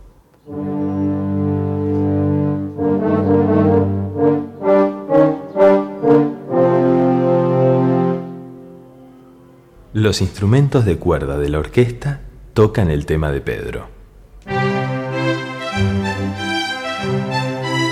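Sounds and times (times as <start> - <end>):
French horns playing a theme: 0.5 - 9.6, 14.5 - 17.9
speech: 10.0 - 14.0.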